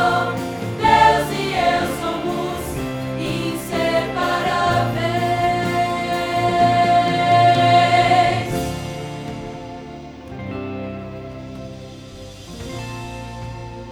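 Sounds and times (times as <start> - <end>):
soprano singing: 0.0 - 10.2.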